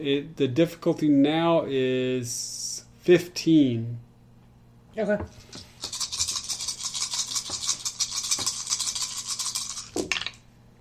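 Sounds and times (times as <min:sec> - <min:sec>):
speech: 0:00.0 - 0:04.1, 0:05.0 - 0:05.7
handful of dice rolling: 0:05.4 - 0:10.4.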